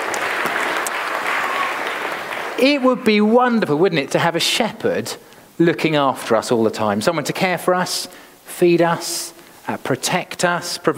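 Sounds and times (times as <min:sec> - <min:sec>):
audience applause: 0:00.0 - 0:02.9
speech: 0:02.6 - 0:10.9.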